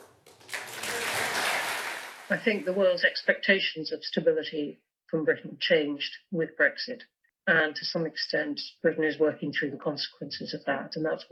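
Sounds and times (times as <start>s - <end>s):
slow applause: 0.0s - 2.8s
speech: 2.3s - 11.3s.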